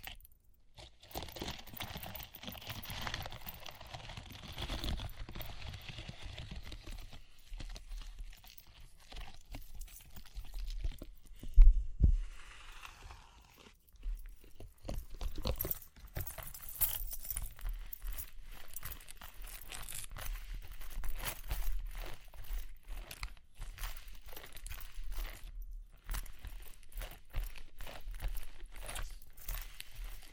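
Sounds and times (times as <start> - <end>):
crackly tapping and scratching: 0.0 - 11.8, 13.8 - 30.3.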